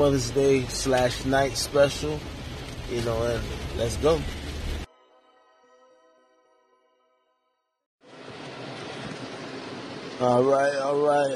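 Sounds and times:
speech: 0.0s - 4.4s, 10.2s - 11.3s
heavy pouring rain storm: 0.0s - 4.9s, 8.0s - 11.3s.

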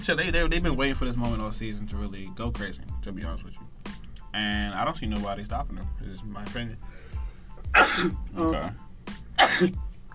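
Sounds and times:
speech: 0.0s - 7.1s, 7.7s - 8.8s, 9.6s - 9.9s
person sneezing: 7.6s - 8.7s, 9.4s - 9.8s.

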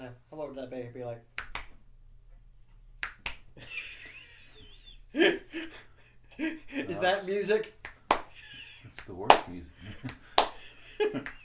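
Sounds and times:
speech: 0.2s - 1.4s, 5.1s - 7.8s, 9.0s - 10.2s, 11.0s - 11.4s
finger snaps: 1.4s - 1.8s, 3.0s - 3.6s, 7.7s - 11.4s
hand claps: 1.4s - 1.8s, 3.0s - 3.8s, 7.6s - 11.4s
laughter: 3.6s - 11.4s.

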